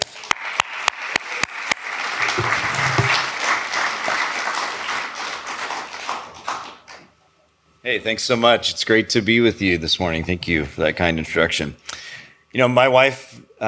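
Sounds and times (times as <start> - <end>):
audience applause: 0.0 - 6.9
speech: 7.9 - 11.9, 12.5 - 13.6.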